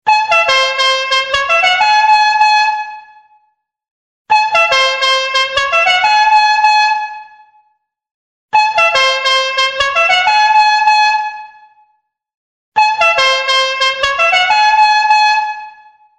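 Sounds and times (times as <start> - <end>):
horn ringtone: 0.1 - 2.6, 4.3 - 7.0, 8.5 - 10.9, 12.8 - 15.1.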